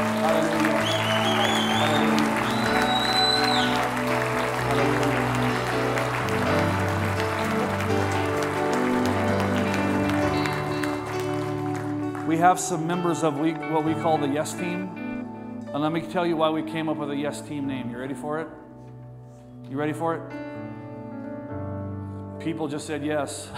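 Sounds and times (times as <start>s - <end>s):
audience clapping hands: 0.0s - 13.6s
sustained musical tones: 0.0s - 16.0s
speech: 12.4s - 15.0s, 15.8s - 18.6s, 19.7s - 20.4s, 22.4s - 23.5s.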